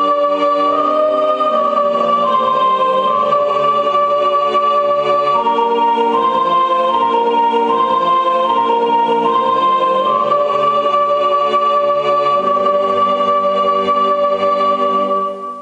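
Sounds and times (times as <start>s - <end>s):
soprano singing a sacred piece, digital recording: 0.0s - 15.6s.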